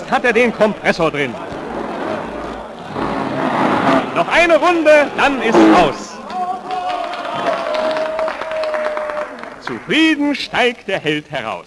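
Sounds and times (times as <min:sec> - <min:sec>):
speech: 0:00.1 - 0:01.5, 0:04.2 - 0:06.0, 0:09.7 - 0:11.6
large crowd at a racetrack: 0:01.2 - 0:10.0
steady high tone: 0:05.4 - 0:06.2.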